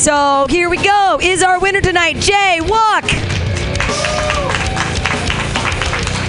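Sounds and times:
speech: 0:00.0 - 0:03.4
audience clapping wildly: 0:03.0 - 0:06.2.

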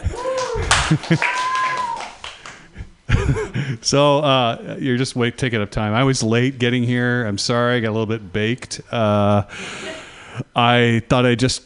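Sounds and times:
scattered cheers: 0:00.0 - 0:02.2
audience clapping: 0:00.0 - 0:02.7
speech: 0:00.9 - 0:01.5, 0:03.3 - 0:11.6.

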